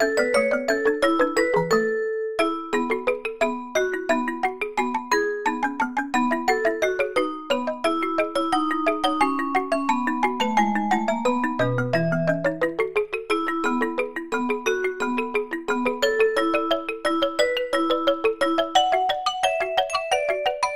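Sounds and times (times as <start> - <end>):
virtual mallet percussion: 0.0 - 20.7.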